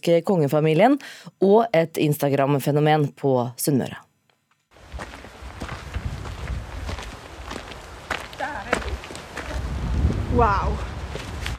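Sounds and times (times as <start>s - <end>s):
speech: 0.0s - 4.1s, 10.4s - 10.9s
footsteps walking up a gravel road in Trandal, a roadless Norwegian village: 4.7s - 11.5s.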